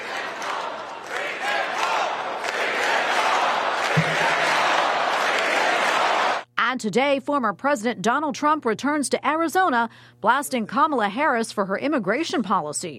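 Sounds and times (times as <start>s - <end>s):
convention crowd chanting: 0.0s - 6.4s
speech: 6.8s - 12.9s.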